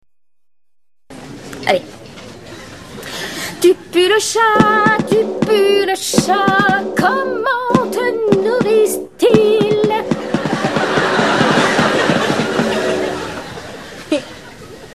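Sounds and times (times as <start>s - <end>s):
drum: 4.5s - 13.4s
laughter: 10.2s - 14.9s.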